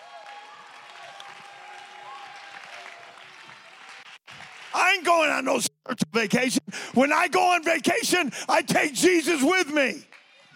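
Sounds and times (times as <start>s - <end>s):
audience clapping: 0.0s - 5.6s, 10.0s - 10.5s
speech: 5.0s - 10.1s.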